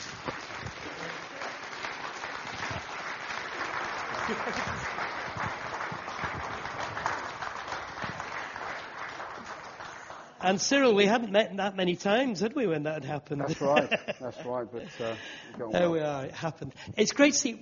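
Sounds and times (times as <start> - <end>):
audience applause welcoming a guest: 0.0 - 10.4
laughter: 4.0 - 5.2, 13.4 - 15.2
speech: 4.3 - 4.9, 10.4 - 17.5.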